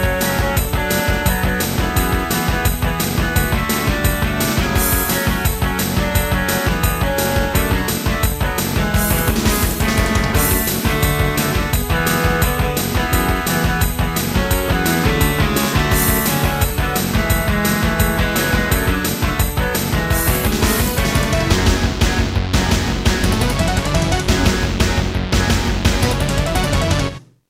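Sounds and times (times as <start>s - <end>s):
intro music: 0.0s - 27.3s.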